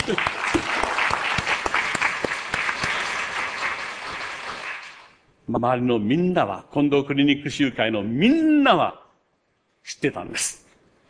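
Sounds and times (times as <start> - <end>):
audience applause: 0.0 - 5.2
speech: 0.1 - 0.7, 5.5 - 9.0, 9.9 - 10.6.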